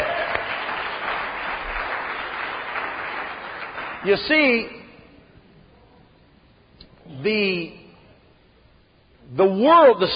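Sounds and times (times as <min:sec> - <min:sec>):
audience clapping: 0:00.0 - 0:04.6
speech: 0:04.0 - 0:04.8, 0:07.2 - 0:07.8, 0:09.3 - 0:10.1.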